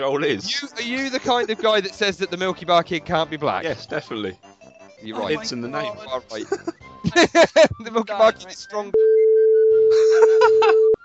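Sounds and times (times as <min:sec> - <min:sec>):
speech: 0:00.0 - 0:09.1, 0:09.9 - 0:10.9
faint laughter: 0:06.4 - 0:07.7, 0:09.9 - 0:10.9
censor beep tone: 0:09.0 - 0:09.9.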